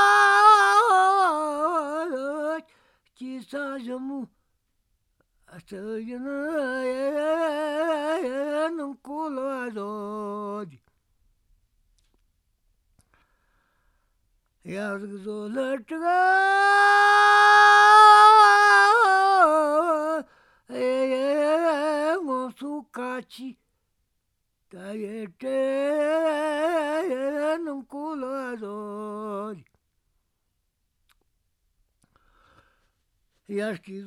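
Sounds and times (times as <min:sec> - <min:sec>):
folk song: 0:00.0 - 0:11.0, 0:13.0 - 0:23.6, 0:24.7 - 0:29.8.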